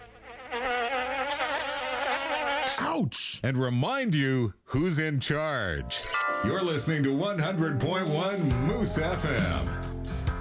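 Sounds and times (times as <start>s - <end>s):
mosquito buzzing: 0.0s - 2.8s
speech: 2.8s - 9.8s.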